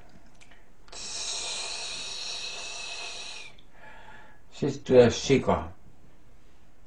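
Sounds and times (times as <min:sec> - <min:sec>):
person imitating a snake hiss: 0:00.9 - 0:03.6
speech: 0:04.6 - 0:05.8.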